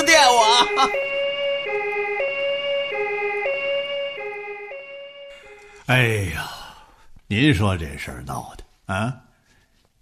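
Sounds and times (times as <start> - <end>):
ambulance siren wailing in a two-tone pattern: 0.0 - 5.9
speech: 0.8 - 1.1, 5.9 - 6.6, 7.3 - 9.2.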